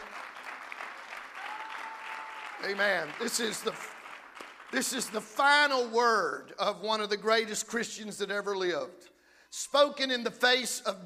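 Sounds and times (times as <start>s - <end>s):
audience clapping hands: 0.0s - 6.0s
speech: 2.6s - 4.0s, 4.7s - 11.0s.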